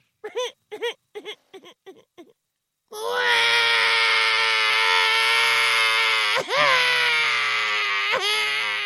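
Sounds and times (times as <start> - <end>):
baby crying: 3.0 - 8.8.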